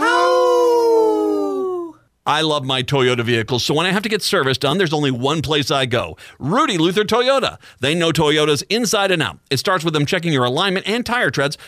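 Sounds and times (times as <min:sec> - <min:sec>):
wolf howling: 0:00.0 - 0:01.9
speech: 0:02.3 - 0:11.6.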